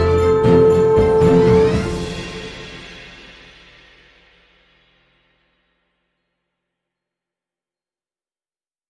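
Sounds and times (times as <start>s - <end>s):
epic Christmas music: 0.0s - 5.5s.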